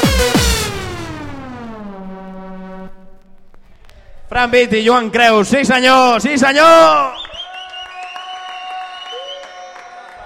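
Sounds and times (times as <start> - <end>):
sustained musical tones: 0.0 - 3.8
speech: 4.4 - 7.2
applause: 7.2 - 10.2.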